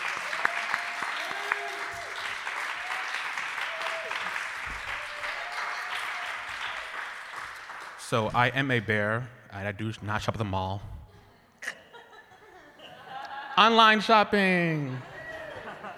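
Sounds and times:
audience clapping: 0.0 - 8.3, 14.8 - 15.9
speech: 8.1 - 10.9, 13.6 - 15.1
laughter: 11.2 - 15.9.

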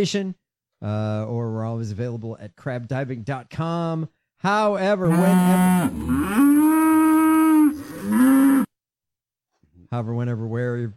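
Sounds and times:
speech: 0.0 - 6.6, 9.9 - 10.9
cows mooing: 5.1 - 8.7.

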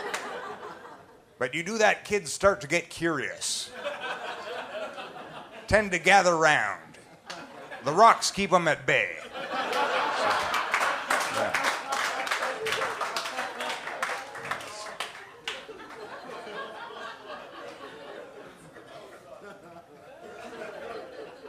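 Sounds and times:
audience laughter: 0.0 - 1.2, 3.6 - 5.7, 9.0 - 21.4
speech: 1.4 - 4.0, 5.7 - 6.8, 7.8 - 9.3
audience applause: 9.7 - 16.2.

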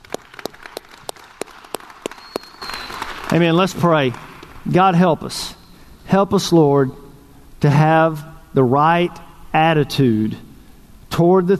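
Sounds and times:
audience hand clapping: 0.0 - 4.8
speech: 3.3 - 7.0, 7.6 - 10.5, 11.2 - 11.5.

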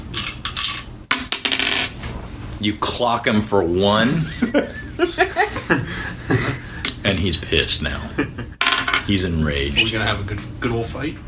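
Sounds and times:
rolling a four-sided die: 0.2 - 2.0
speech: 2.6 - 6.0, 7.2 - 11.2
laughter: 4.0 - 6.8, 8.0 - 8.6.

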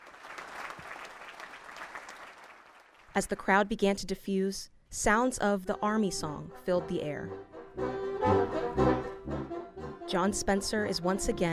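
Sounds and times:
crowd applause for a standing ovation: 0.0 - 3.1
speech: 3.2 - 8.4, 10.1 - 11.5.

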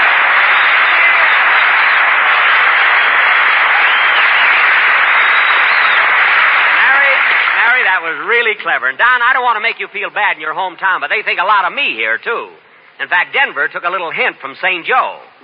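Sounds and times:
crowd voices: 0.0 - 7.6
studio audience applause: 0.0 - 8.5
speech: 8.1 - 15.4.

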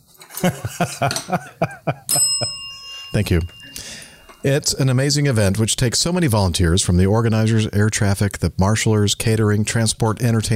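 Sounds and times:
laughter: 0.3 - 2.6
speech: 0.4 - 2.3, 3.2 - 3.6, 4.4 - 10.5
hand bell ringing: 2.1 - 4.8.

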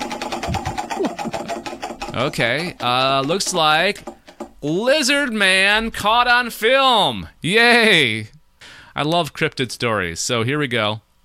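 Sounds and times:
prize wheel spinning and clicking: 0.0 - 4.5
speech: 2.2 - 8.3, 9.0 - 11.0.

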